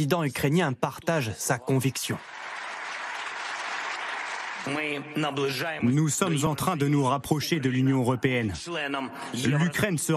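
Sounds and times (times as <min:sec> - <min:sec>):
speech: 0:00.0 - 0:02.5, 0:04.6 - 0:10.1
parliament audience applauding: 0:02.0 - 0:05.6.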